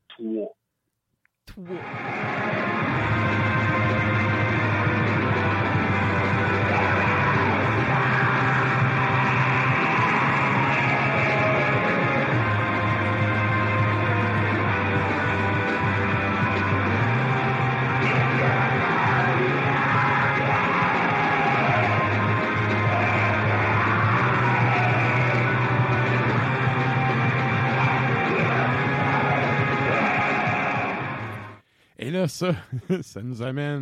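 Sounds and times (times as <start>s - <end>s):
speech: 0.2s - 0.6s, 1.5s - 4.1s, 32.3s - 33.8s
shouted yelling vocals: 1.6s - 3.8s, 5.6s - 13.2s, 16.8s - 31.4s
loud dense song from an album: 1.8s - 31.6s
laughter: 32.4s - 33.4s.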